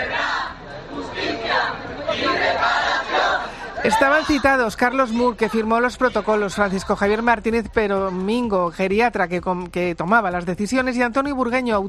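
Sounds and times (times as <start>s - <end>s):
crowd of families shouting outside a courthouse: 0.0s - 7.4s
speech: 3.8s - 11.8s.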